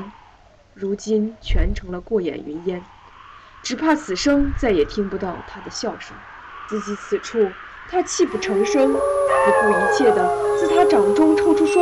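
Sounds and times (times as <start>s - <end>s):
speech: 0.8s - 3.0s, 3.7s - 11.8s
wolves howling: 8.2s - 11.8s.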